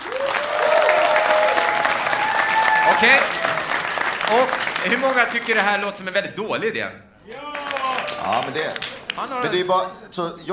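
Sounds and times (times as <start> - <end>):
audience applause: 0.0 - 6.0, 7.3 - 9.7
speech: 3.0 - 3.4, 4.3 - 7.5, 8.2 - 10.5.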